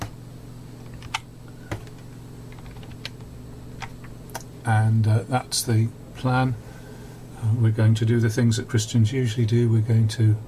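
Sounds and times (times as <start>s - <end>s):
computer mouse clicking: 0.8s - 4.5s
speech: 4.7s - 6.7s, 7.4s - 10.4s.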